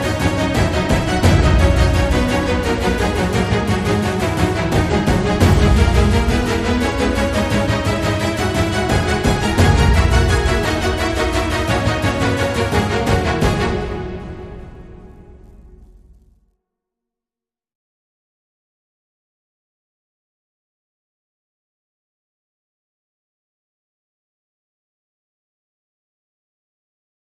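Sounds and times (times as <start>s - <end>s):
drums: 0.0s - 16.4s.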